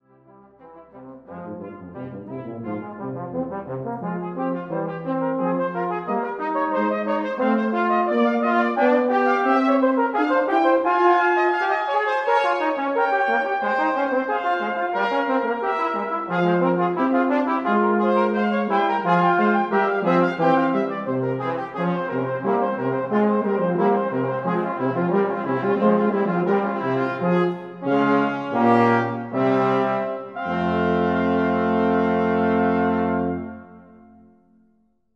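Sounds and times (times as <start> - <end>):
brass quartet playing a fugue: 0.4 - 34.2.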